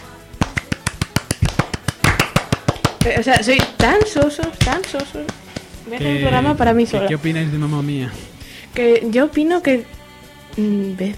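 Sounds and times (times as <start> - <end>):
hand clapping: 0.4 - 6.0
speech: 3.0 - 10.0, 10.6 - 11.1.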